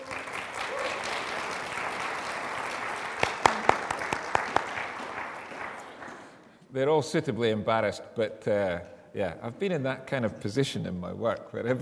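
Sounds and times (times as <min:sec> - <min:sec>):
audience applause: 0:00.0 - 0:06.4
speech: 0:06.8 - 0:11.8.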